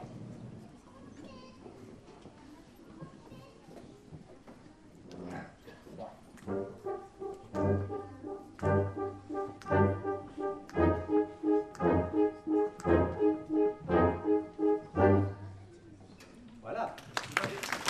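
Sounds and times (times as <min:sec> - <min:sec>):
waltz accompaniment: 0:06.3 - 0:16.1.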